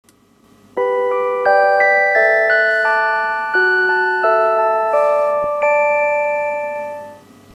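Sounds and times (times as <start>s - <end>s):
electronic serenade: 0.8s - 7.2s.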